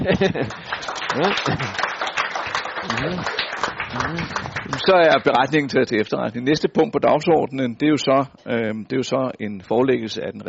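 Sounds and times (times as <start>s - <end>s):
speech: 0.0s - 1.9s, 2.8s - 10.4s
audience clapping hands in approval: 0.0s - 5.6s.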